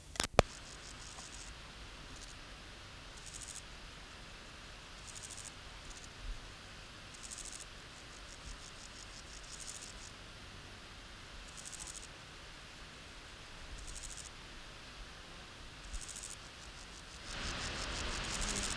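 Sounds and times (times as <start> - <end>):
sharp click: 0.0 - 1.3
Euchorthippus declivus grasshopper song: 0.0 - 18.7
hiss: 0.1 - 18.7.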